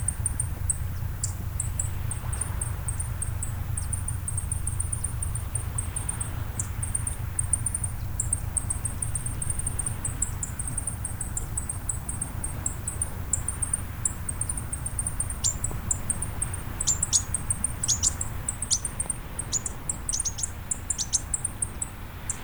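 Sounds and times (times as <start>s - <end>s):
birds: 0.0s - 22.4s.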